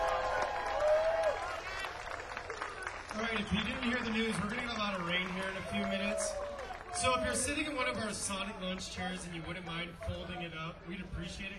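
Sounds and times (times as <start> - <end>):
audience applause for a band: 0.0 - 9.2
speech: 3.4 - 11.5.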